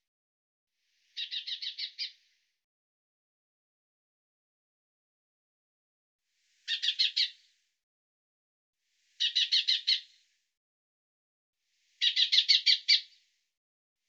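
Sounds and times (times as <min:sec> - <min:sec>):
bird calling in short buzzy bursts of rapid chirps: 0:01.2 - 0:02.2, 0:06.7 - 0:07.3, 0:09.2 - 0:10.0, 0:12.0 - 0:13.2.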